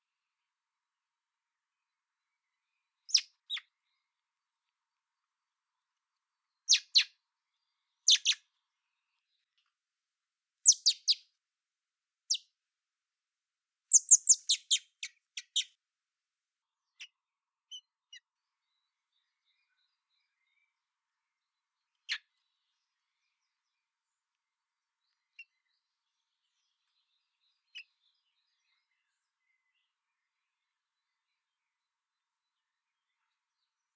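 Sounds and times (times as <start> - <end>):
common blackbird giving sharp high chinking calls: 3.1 - 3.6, 6.7 - 7.1, 8.1 - 8.4, 10.6 - 11.2, 13.9 - 15.7.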